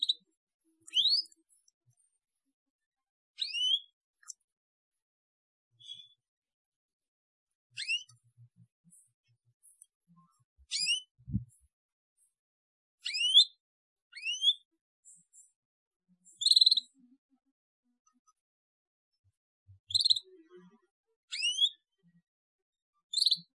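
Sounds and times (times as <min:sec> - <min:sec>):
Atlantic canary song: 0:00.0 - 0:02.1, 0:03.3 - 0:04.5, 0:05.7 - 0:06.3, 0:07.7 - 0:12.4, 0:13.0 - 0:15.6, 0:16.2 - 0:17.2, 0:19.7 - 0:20.6, 0:21.3 - 0:22.0, 0:23.0 - 0:23.5.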